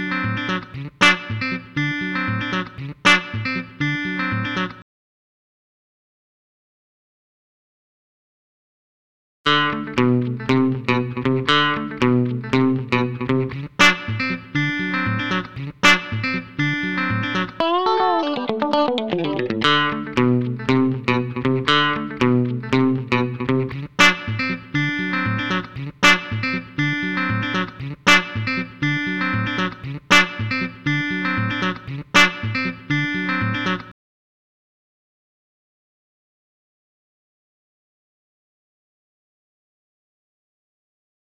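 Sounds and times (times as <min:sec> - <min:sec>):
guitar before tube booster: 0:00.0 - 0:04.8, 0:09.5 - 0:34.0.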